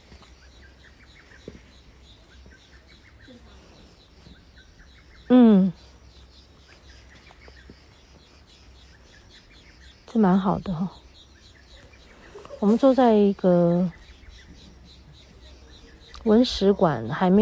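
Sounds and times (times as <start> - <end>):
birds chirping: 0.0 - 17.3
person murmuring: 5.3 - 5.8
speech: 10.2 - 11.0, 12.6 - 14.0, 16.2 - 17.3.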